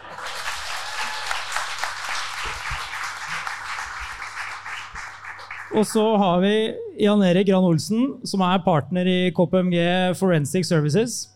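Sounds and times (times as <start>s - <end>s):
crowd applause: 0.0s - 6.0s
speech: 5.7s - 11.3s.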